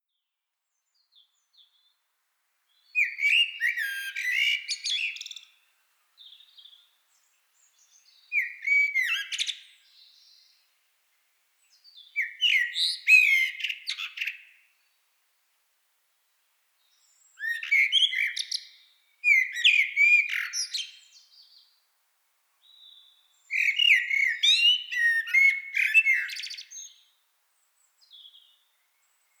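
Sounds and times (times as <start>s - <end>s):
Eurasian blackbird singing: 2.7s - 5.6s, 6.2s - 10.6s, 11.7s - 14.6s, 17.0s - 21.7s, 22.6s - 27.2s, 28.0s - 29.3s.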